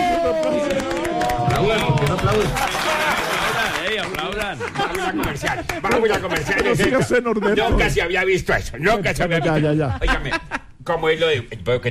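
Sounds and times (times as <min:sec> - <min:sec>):
audience applause: 0:00.0 - 0:06.8
laughter: 0:01.4 - 0:08.0, 0:08.8 - 0:10.8
speech: 0:02.3 - 0:02.8, 0:04.1 - 0:11.8.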